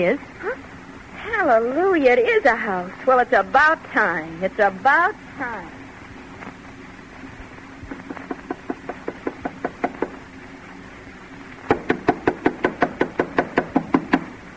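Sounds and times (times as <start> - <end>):
speech: 0.0 - 0.4, 1.4 - 5.8
knocking on a door: 8.2 - 10.2, 11.7 - 14.3.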